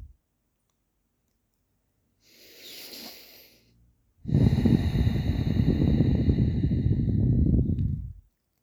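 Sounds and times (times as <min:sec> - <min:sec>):
deep breathing in and out during a calming exercise: 0:02.2 - 0:08.1.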